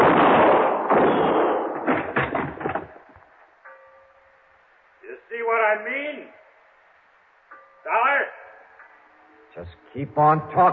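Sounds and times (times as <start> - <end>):
gunshots in a radio drama: 0.0 - 3.0
speech: 9.6 - 10.7.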